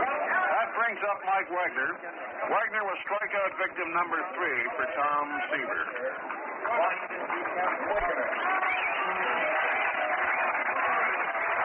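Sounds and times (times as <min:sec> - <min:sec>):
speech: 0:00.9 - 0:09.3
baseball crowd applauding: 0:06.2 - 0:11.6.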